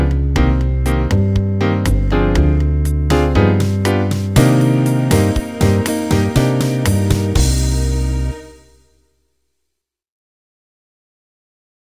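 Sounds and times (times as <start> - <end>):
jazz music: 0.0 - 9.1.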